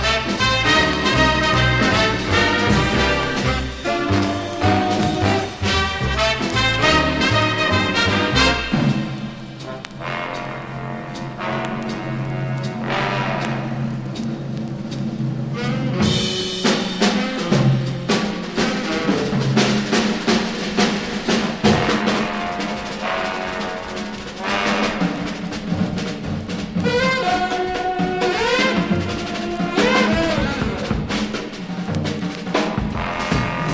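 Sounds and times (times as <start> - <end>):
wild stereo drums: 0.0 - 33.7.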